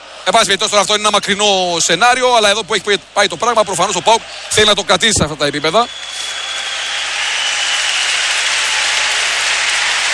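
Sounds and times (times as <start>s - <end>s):
speech: 0.2s - 6.5s
applause from part of the crowd: 3.2s - 10.1s.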